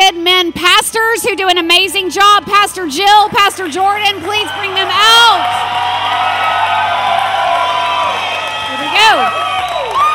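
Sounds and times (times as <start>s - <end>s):
speech: 0.1s - 6.4s, 9.0s - 9.4s
crowd cheering with whoops and shouts: 3.6s - 10.1s.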